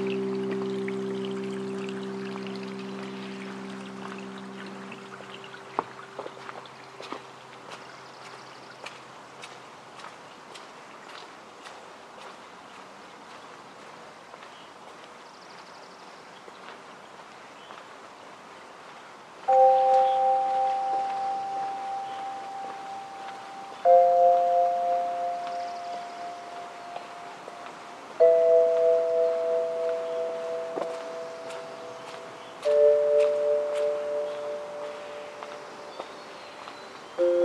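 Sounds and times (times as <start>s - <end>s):
struck bell-like tones: 0.0s - 6.1s, 19.5s - 37.4s
low ringing chord: 0.0s - 7.5s, 19.5s - 37.4s.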